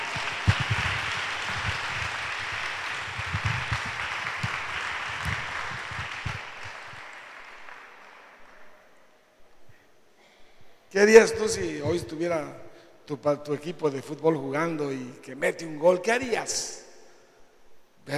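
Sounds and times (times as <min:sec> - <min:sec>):
audience applause: 0:00.0 - 0:08.9
speech: 0:11.0 - 0:16.8.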